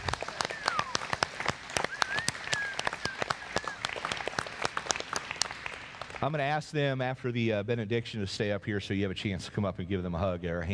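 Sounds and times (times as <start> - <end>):
crowd applause: 0.0 - 6.6
whistles and whoops: 0.2 - 1.2, 1.8 - 4.0
speech: 6.2 - 10.7.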